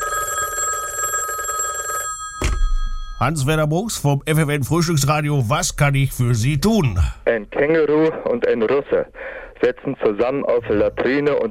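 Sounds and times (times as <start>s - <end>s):
telephone ringing: 0.0s - 3.8s
clunk: 2.4s - 3.2s
speech: 3.2s - 11.4s.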